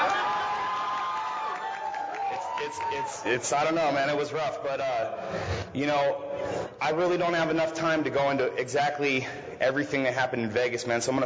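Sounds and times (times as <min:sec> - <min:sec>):
high whoops: 0:00.0 - 0:03.4
crowd cheering and applauding: 0:00.0 - 0:03.5
speech: 0:02.6 - 0:11.2.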